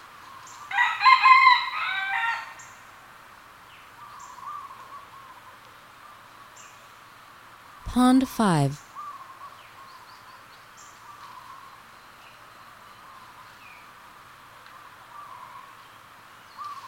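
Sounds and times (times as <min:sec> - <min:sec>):
Red junglefowl crowing: 0:00.7 - 0:02.6
speech: 0:08.0 - 0:08.8.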